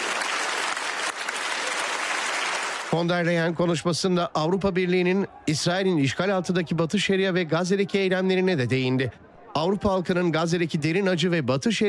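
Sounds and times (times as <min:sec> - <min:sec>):
standing ovation for Ursula von der Leyen and Canadian Prime Minister Carney: 0:00.0 - 0:03.0
speech: 0:02.9 - 0:11.8.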